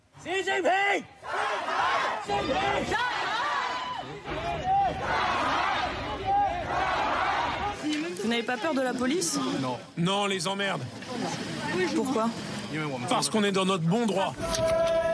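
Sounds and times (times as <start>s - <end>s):
crowd shouting hostile slogans at protest: 0.0s - 10.0s, 13.8s - 15.1s
speech: 0.2s - 3.2s, 8.2s - 15.0s.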